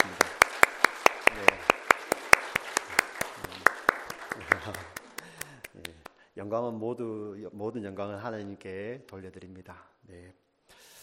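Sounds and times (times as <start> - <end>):
church congregation clapping in unison for the choir and accompanist: 0.0 - 6.1
speech: 6.4 - 10.4.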